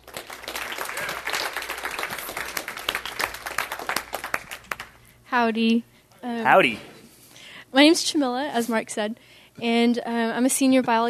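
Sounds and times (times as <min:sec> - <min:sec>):
steady crowd applause: 0:00.0 - 0:05.0
speech: 0:05.3 - 0:06.9, 0:07.7 - 0:11.0.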